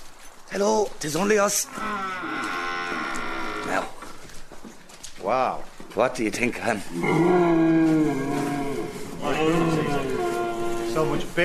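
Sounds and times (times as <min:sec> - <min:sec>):
speech: 0:00.5 - 0:02.6, 0:05.2 - 0:08.4, 0:09.3 - 0:10.0, 0:11.0 - 0:11.4
stag deer bellowing: 0:01.7 - 0:04.0, 0:06.9 - 0:11.4.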